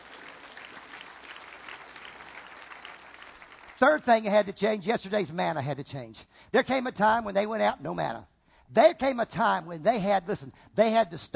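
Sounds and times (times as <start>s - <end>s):
audience clapping: 0.0s - 4.2s
speech: 3.8s - 11.3s.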